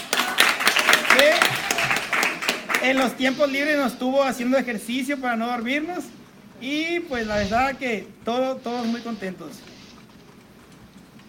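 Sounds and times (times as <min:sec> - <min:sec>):
audience applause: 0:00.0 - 0:03.2
speech: 0:02.8 - 0:09.7.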